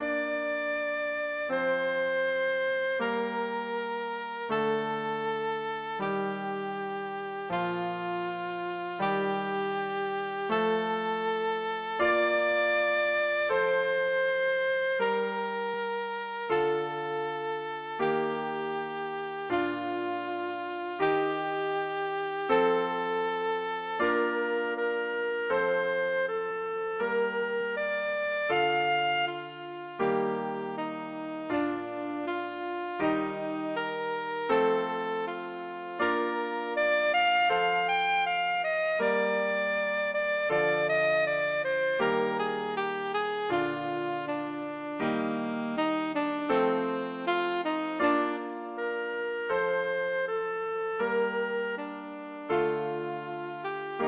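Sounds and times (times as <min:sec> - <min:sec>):
saxophone: 0:00.0 - 0:54.0.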